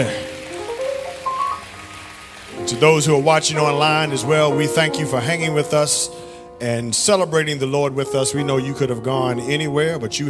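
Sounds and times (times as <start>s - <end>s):
speech: 0.0s - 0.2s, 2.7s - 10.2s
audience applauding: 0.0s - 4.8s.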